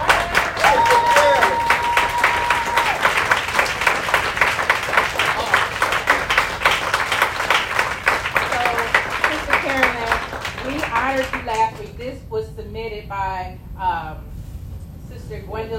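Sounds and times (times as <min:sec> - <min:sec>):
round of applause: 0:00.0 - 0:11.9.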